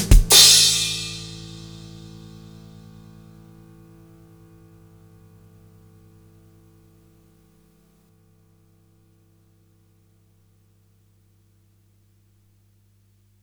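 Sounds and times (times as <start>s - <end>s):
keyboard: 0.0s - 7.2s.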